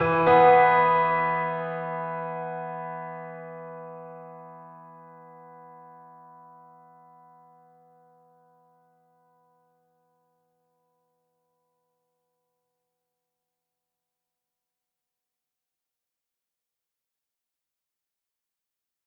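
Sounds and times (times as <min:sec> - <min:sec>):
piano theme: 0:00.0 - 0:08.2.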